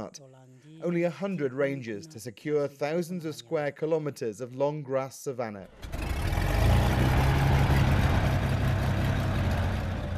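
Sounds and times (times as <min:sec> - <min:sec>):
speech: 0:00.0 - 0:06.1
small plane engine: 0:05.7 - 0:10.1.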